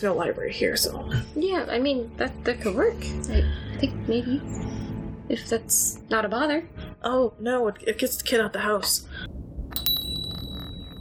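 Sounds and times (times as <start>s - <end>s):
speech: 0.0s - 9.4s
bell ringing: 9.7s - 10.9s.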